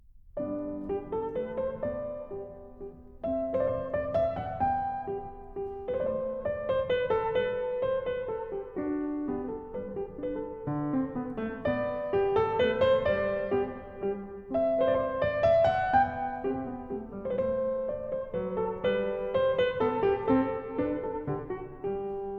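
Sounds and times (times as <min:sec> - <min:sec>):
piano minuet: 0:00.0 - 0:22.3.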